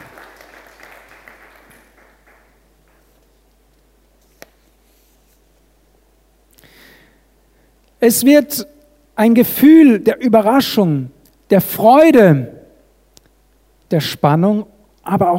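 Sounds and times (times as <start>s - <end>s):
audience applause: 0.0s - 3.2s
speech: 8.0s - 12.6s, 13.9s - 15.3s.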